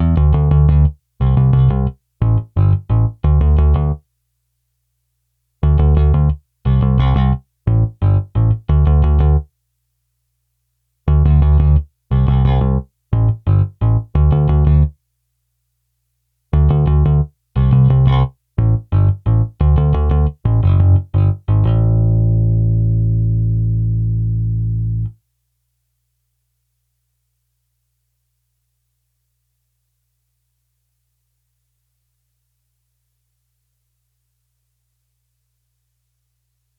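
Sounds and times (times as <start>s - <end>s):
bass: 0.0s - 4.1s, 5.6s - 9.5s, 11.0s - 15.0s, 16.5s - 25.2s.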